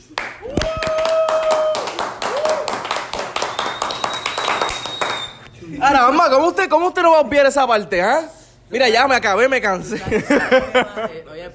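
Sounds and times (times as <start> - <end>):
loud applause: 0.0 - 5.4
people whooping: 0.4 - 5.5
whistle-like tone: 3.4 - 5.5
speech: 5.8 - 11.5
laughter: 9.8 - 11.2.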